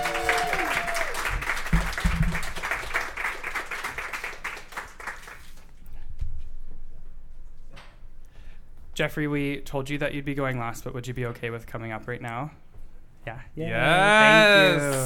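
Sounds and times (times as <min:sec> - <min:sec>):
audience applause: 0:00.0 - 0:05.5, 0:14.0 - 0:15.0
speech: 0:09.0 - 0:12.6, 0:13.2 - 0:15.0.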